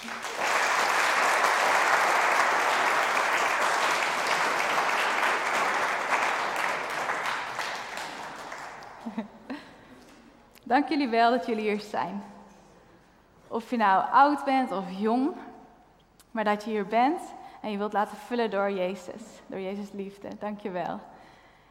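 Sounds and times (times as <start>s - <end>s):
audience applause: 0.0s - 9.2s
speech: 10.7s - 12.3s, 13.6s - 15.5s, 16.4s - 21.1s.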